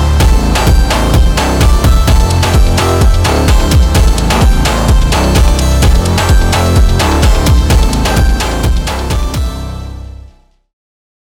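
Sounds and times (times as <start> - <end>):
Brazilian funk music: 0.0 - 10.3.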